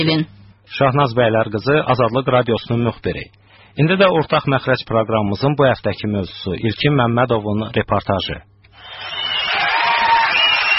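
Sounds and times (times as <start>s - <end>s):
speech: 0.0s - 9.2s
studio audience applauding and cheering a contestant on a television quiz show: 8.8s - 10.7s.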